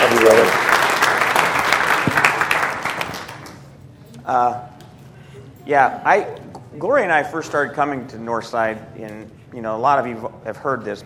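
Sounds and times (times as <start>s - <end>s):
audience applause: 0.0s - 3.6s
speech: 5.7s - 11.0s.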